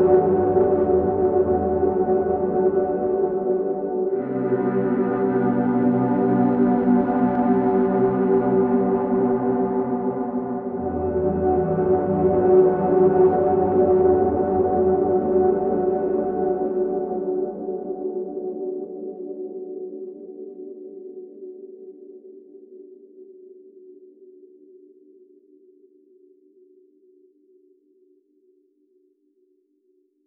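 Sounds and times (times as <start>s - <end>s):
ambient pad progression: 0.0s - 18.2s.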